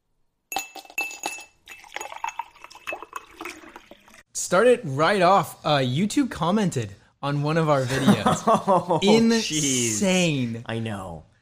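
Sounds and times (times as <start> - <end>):
ice cubes clinking in a glass of iced coffee: 0.5 - 4.2
person sipping iced coffee: 1.7 - 4.2
speech: 4.4 - 11.3
laughter: 7.8 - 9.6.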